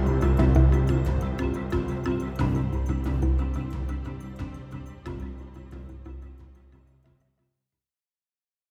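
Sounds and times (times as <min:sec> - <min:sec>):
swamp music loop: 0:00.0 - 0:06.0.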